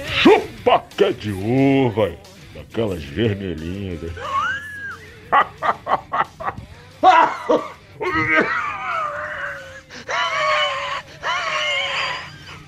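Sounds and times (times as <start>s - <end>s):
speech: 0.3s - 4.5s
laughter: 4.0s - 12.6s
person coughing: 7.1s - 8.7s.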